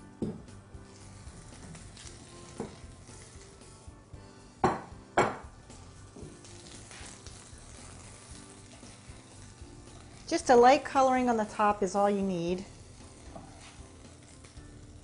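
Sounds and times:
frying food sizzling: 0.0 - 15.0
mixing bowl knocking as moved on a kitchen counter: 4.6 - 5.5
speech: 10.3 - 12.7.

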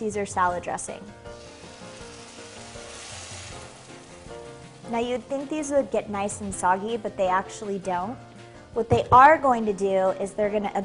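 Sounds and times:
speech: 0.0 - 1.5, 4.9 - 10.8
croutons sizzling in olive oil: 1.2 - 5.8.

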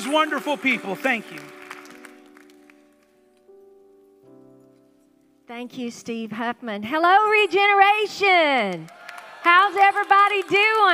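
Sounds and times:
speech: 0.0 - 1.6, 5.5 - 10.9
audience clapping: 0.0 - 3.3, 7.6 - 10.9.

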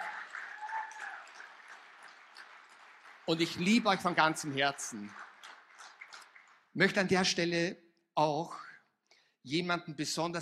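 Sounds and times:
audience applause: 0.0 - 7.1
speech: 3.3 - 5.3, 6.8 - 8.6, 9.4 - 10.4.

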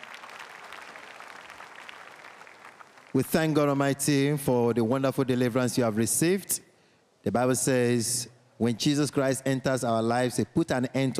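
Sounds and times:
audience clapping: 0.0 - 3.6
speech: 3.1 - 11.1.

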